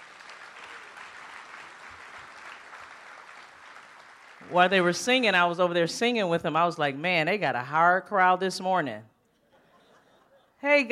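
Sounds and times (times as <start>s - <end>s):
audience applause: 0.0s - 5.0s
speech: 4.4s - 9.1s, 10.6s - 10.9s
laughter: 9.4s - 10.6s.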